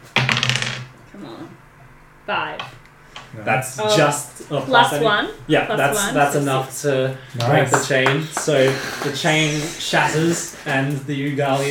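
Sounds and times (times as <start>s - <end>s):
dice clattering onto a hard surface: 0.2s - 0.9s
speech: 1.2s - 1.7s, 2.3s - 11.6s.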